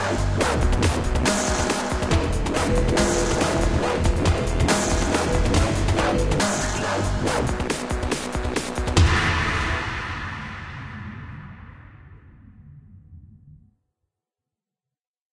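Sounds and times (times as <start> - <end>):
wub machine dubstep music: 0.0 - 10.1.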